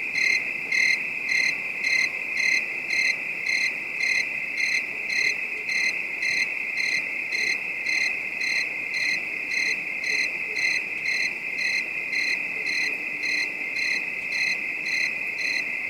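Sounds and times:
crickets trilling at night: 0.0 - 15.8.

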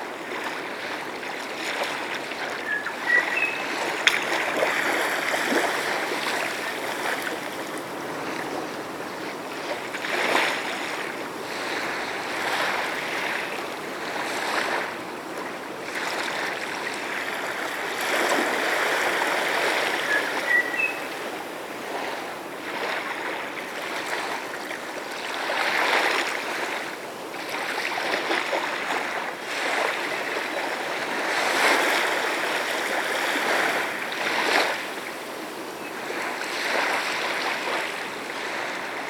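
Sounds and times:
gentle waves lapping the shoreline: 0.0 - 39.0.

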